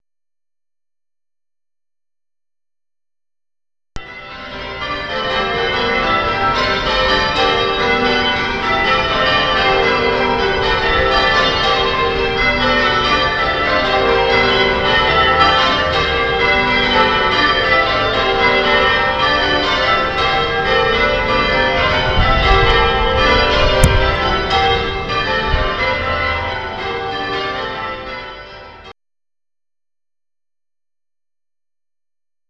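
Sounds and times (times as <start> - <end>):
bells ringing: 4.0 - 28.9.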